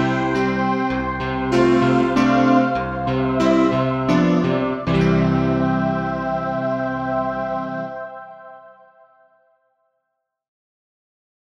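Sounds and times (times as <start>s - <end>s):
instrumental backing track without melody: 0.0s - 8.5s.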